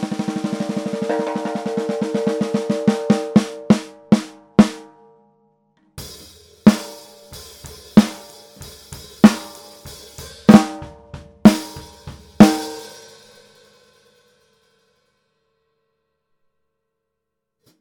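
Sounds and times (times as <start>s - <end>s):
maple 14x6.5 snare drum: 0.0s - 4.9s, 6.2s - 13.0s.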